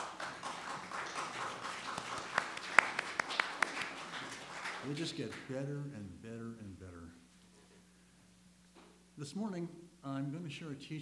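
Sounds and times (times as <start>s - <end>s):
audience applause: 0.0s - 5.5s
speech: 4.8s - 7.3s, 9.2s - 11.0s.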